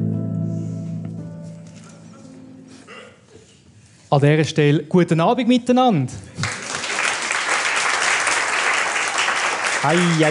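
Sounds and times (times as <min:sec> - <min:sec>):
speech: 0:04.1 - 0:06.4, 0:09.8 - 0:10.2
audience applause: 0:06.4 - 0:10.2.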